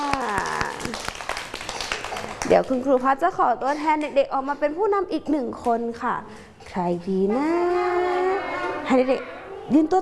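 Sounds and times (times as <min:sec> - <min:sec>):
children clapping: 0:00.0 - 0:02.8
speech: 0:02.5 - 0:08.1, 0:08.9 - 0:10.0.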